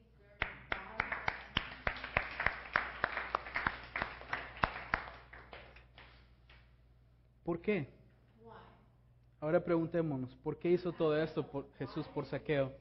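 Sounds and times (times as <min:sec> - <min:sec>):
audience applause: 0:00.7 - 0:06.1
speech: 0:07.5 - 0:08.0, 0:09.4 - 0:12.7.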